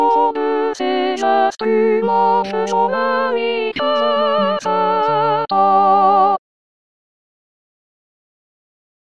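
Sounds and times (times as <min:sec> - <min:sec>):
soprano singing: 0:00.0 - 0:06.4.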